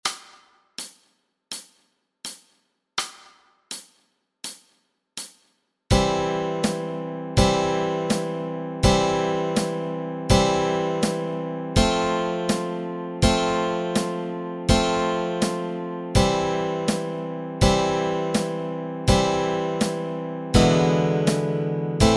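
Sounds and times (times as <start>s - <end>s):
gospel song chords: 5.9s - 22.1s.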